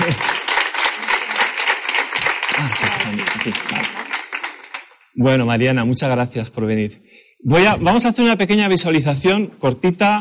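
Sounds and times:
audience applause: 0:00.0 - 0:05.1
speech: 0:02.6 - 0:04.1, 0:05.2 - 0:10.2.

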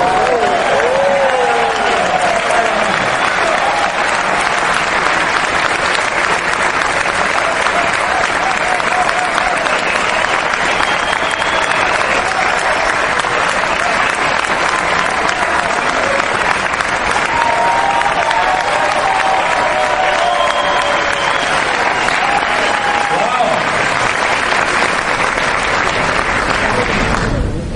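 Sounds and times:
faint voices and whoops: 0:00.0 - 0:04.2, 0:07.5 - 0:14.1, 0:17.2 - 0:23.6
audience applause: 0:00.0 - 0:27.6.

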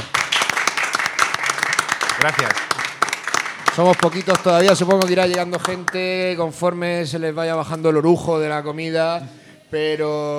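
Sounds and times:
audience applause: 0:00.0 - 0:06.0
speech: 0:02.2 - 0:02.8, 0:03.8 - 0:10.3.

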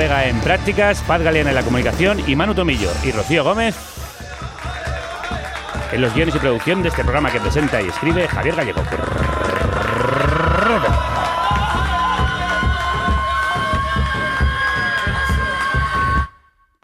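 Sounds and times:
speech: 0:00.1 - 0:04.0, 0:05.9 - 0:09.4
ancestral tribal battle cries: 0:08.4 - 0:16.3.

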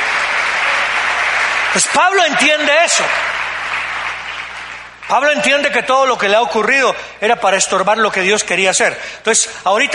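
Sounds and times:
audience applause: 0:00.0 - 0:05.4
speech: 0:01.7 - 0:03.3, 0:05.1 - 0:09.9.

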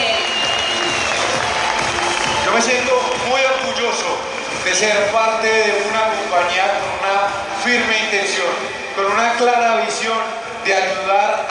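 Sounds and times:
audience applause: 0:00.0 - 0:08.3
speech: 0:04.7 - 0:11.5.

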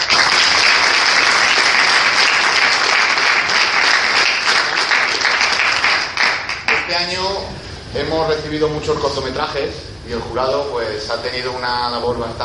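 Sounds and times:
audience applause: 0:00.0 - 0:07.1
speech: 0:07.9 - 0:12.4.

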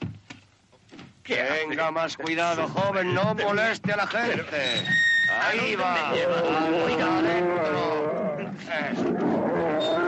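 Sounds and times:
speech: 0:01.3 - 0:10.0
bear growling in a cage: 0:05.9 - 0:10.0.

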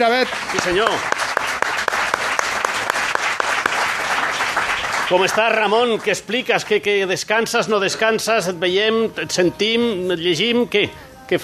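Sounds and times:
speech: 0:00.0 - 0:01.2, 0:05.1 - 0:11.4
audience applause: 0:00.0 - 0:06.9.

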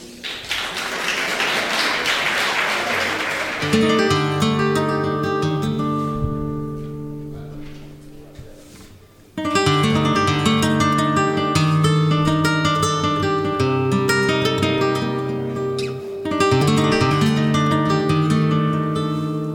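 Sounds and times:
audience applause: 0:00.0 - 0:04.8
guitar playing sustained plucked notes and chords: 0:03.6 - 0:08.4, 0:09.3 - 0:19.5.

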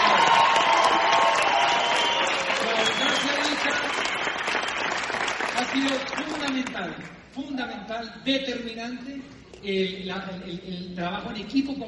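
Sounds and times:
faint cheers and voices: 0:00.0 - 0:03.6
audience applause: 0:00.0 - 0:06.6
speech: 0:07.9 - 0:11.8.

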